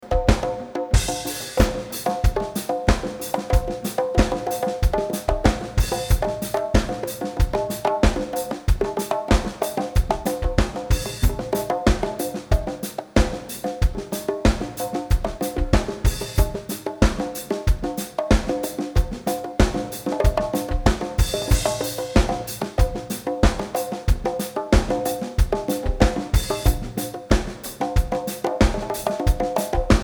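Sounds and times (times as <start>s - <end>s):
drums: 0.0s - 30.0s.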